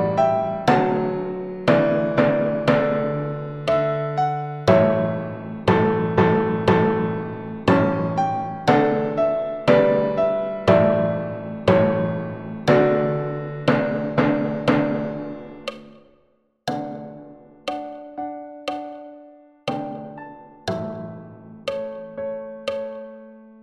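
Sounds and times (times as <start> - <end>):
timpani: 0.0 - 18.3, 19.7 - 22.8
piano: 0.0 - 23.6.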